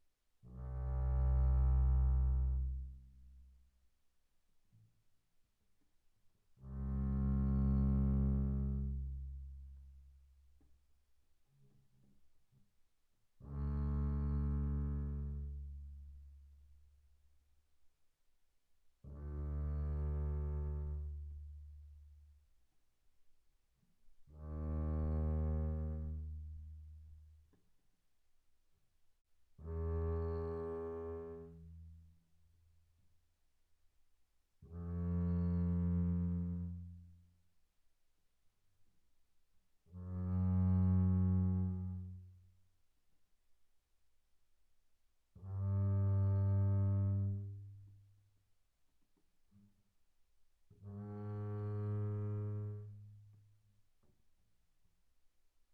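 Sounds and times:
double bass bowed pianissimo on A string C2 to Bb2: 0.5 - 3.5, 6.6 - 10.0, 13.4 - 16.5, 19.1 - 21.7, 24.4 - 27.2, 29.6 - 32.0, 34.7 - 37.2, 40.0 - 42.4, 45.4 - 48.0, 50.8 - 53.4.

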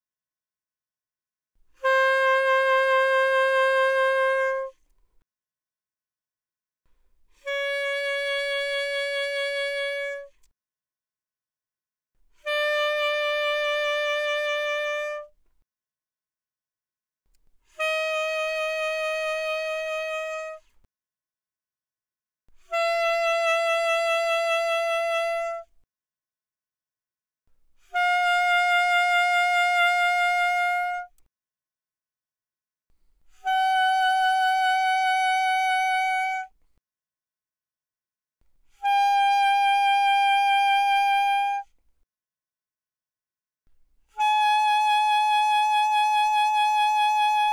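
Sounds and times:
alto saxophone with vibrato: 1.8 - 4.8, 7.4 - 10.3, 12.4 - 15.4, 17.8 - 20.7, 22.7 - 25.7, 27.9 - 31.2, 33.4 - 36.6, 38.8 - 41.7, 44.1 - 47.5.

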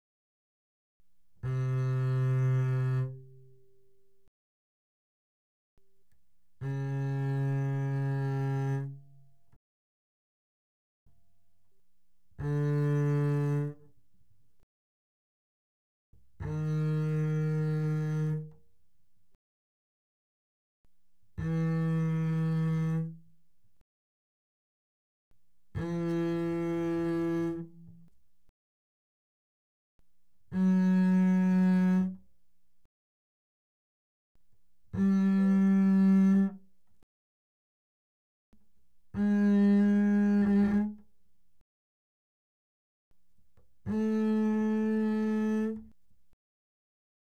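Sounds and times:
double bass bowed fortissimo on the A string: 1.4 - 3.7, 6.6 - 9.2, 12.4 - 13.8, 16.4 - 18.5, 21.4 - 23.3, 25.7 - 28.1, 30.5 - 32.3, 34.9 - 36.6, 39.1 - 41.0, 43.8 - 46.0.

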